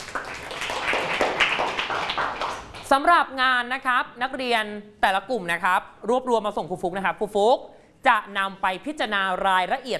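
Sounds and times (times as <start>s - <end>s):
class of students applauding a presenting group: 0.0s - 2.9s
speech: 2.9s - 9.9s.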